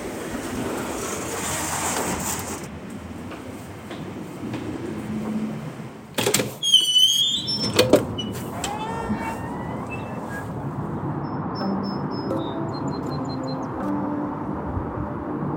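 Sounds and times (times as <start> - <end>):
cable car pulling into upper station: 0.0 - 15.5
cable car clanks and metallic squeals: 6.2 - 10.6
chirping tones: 9.0 - 14.4.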